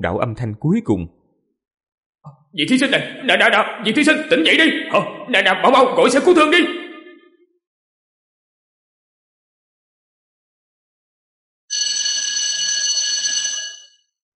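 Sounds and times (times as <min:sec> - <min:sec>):
speech: 0:00.0 - 0:01.2, 0:02.2 - 0:06.8
school bell ringing: 0:11.7 - 0:14.0.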